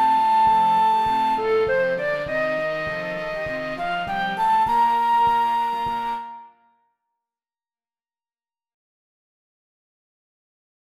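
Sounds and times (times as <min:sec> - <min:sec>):
flute: 0:00.0 - 0:06.9.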